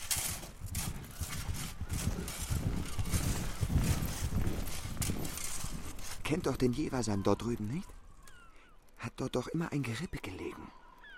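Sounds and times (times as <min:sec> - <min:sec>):
horse hooves clip-clopping: 0:00.0 - 0:07.9
speech: 0:06.3 - 0:08.0, 0:09.1 - 0:10.8.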